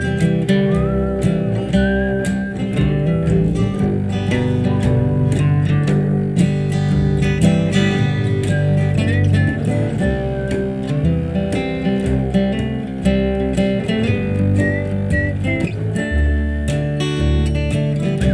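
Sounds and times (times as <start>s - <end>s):
double bass: 0.0s - 18.3s.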